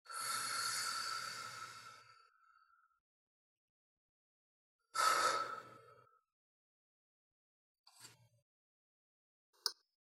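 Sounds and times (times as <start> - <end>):
breathing: 0.1 - 3.0, 5.0 - 6.3.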